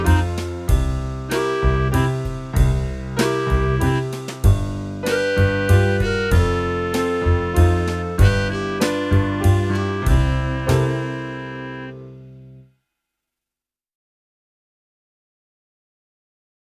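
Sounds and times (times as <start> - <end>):
flute: 0.0 - 12.2.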